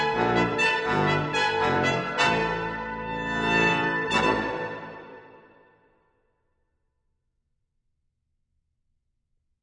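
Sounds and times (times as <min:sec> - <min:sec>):
fanfare for five-piece brass ensemble: 0:00.0 - 0:05.8.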